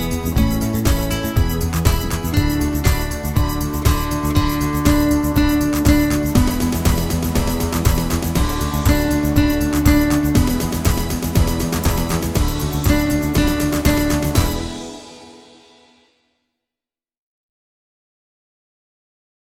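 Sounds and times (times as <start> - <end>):
guitar: 0.0 - 15.5.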